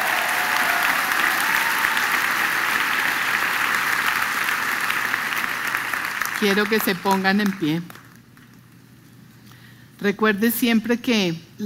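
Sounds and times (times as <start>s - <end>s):
audience applause: 0.0s - 7.7s
speech: 6.4s - 8.0s, 10.0s - 11.6s.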